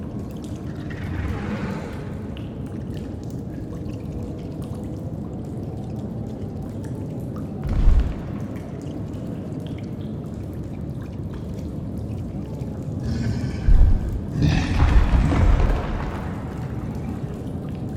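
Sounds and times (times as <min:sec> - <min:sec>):
cave ambience: 0:00.0 - 0:17.9.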